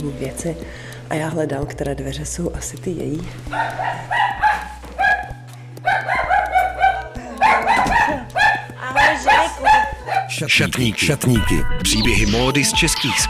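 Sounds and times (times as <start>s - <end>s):
speech: 0.0s - 4.7s, 10.4s - 13.2s
small dog barking: 3.5s - 10.3s.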